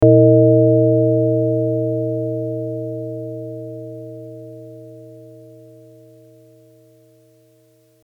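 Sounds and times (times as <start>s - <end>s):
gong: 0.0s - 7.4s.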